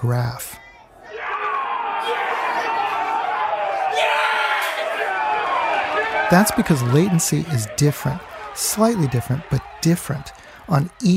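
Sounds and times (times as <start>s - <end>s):
speech: 0.0s - 0.6s, 6.3s - 11.1s
people cheering and shouting from open windows and passing cars around Boston: 0.4s - 11.1s.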